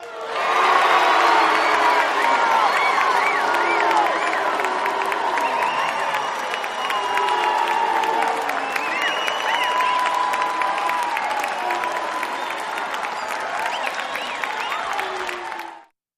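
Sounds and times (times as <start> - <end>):
crowd reacting to a statement: 0.0 - 15.9.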